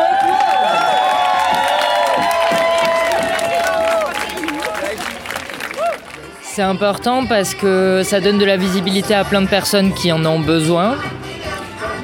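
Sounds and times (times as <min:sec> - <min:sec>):
audience applause: 0:00.0 - 0:06.4
speech: 0:06.6 - 0:11.2.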